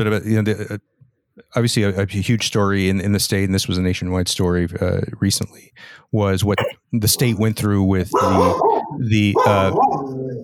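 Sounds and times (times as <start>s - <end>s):
speech: 0.0s - 10.4s
pet dog barking and yelping: 8.1s - 10.4s.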